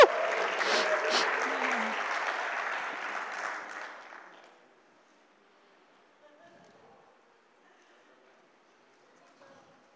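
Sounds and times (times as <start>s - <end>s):
audience cheering: 0.0s - 2.1s
audience clapping: 0.0s - 4.6s.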